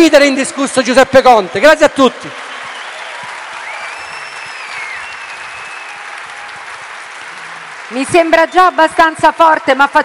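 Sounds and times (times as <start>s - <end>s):
speech: 0.0s - 2.5s, 7.9s - 10.0s
crowd applause: 1.6s - 9.7s
whistle: 3.6s - 6.0s.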